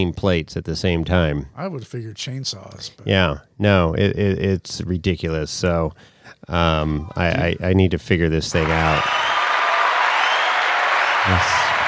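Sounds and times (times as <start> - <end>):
speech: 0.0 - 9.4, 11.2 - 11.6
applause: 8.5 - 11.8.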